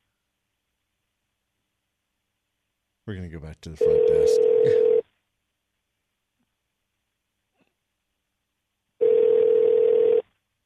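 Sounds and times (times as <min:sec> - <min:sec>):
speech: 0:03.1 - 0:04.9
phone ringing on a call: 0:03.8 - 0:05.0, 0:09.0 - 0:10.2.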